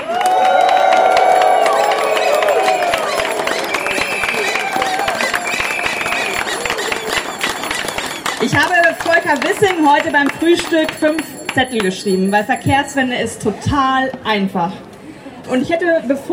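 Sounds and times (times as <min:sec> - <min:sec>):
crowd cheering and whooping: 0:00.0 - 0:09.4
dense clapping: 0:00.0 - 0:12.0
speech: 0:08.5 - 0:14.9, 0:15.5 - 0:16.3.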